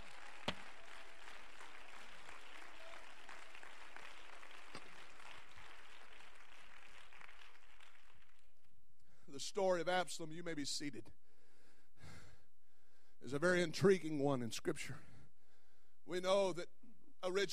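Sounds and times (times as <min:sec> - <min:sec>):
audience clapping hands: 0:00.0 - 0:08.6
speech: 0:09.4 - 0:11.2, 0:13.2 - 0:15.1, 0:16.1 - 0:17.5.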